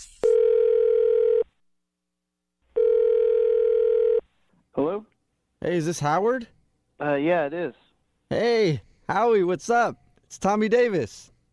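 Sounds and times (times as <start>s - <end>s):
telephone dial tone: 0.3s - 1.4s, 2.8s - 4.2s
speech: 5.0s - 11.3s.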